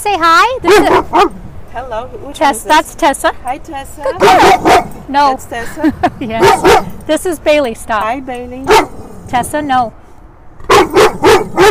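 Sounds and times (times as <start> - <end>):
speech: 0.1 - 10.0
dog barking protectively at truck: 0.7 - 1.4, 4.2 - 5.0, 6.4 - 7.0, 8.7 - 9.0, 10.6 - 11.6.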